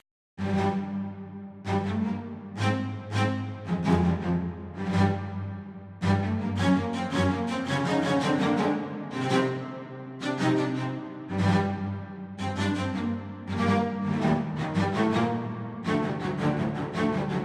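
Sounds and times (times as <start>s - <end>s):
cello: 0.4s - 17.4s.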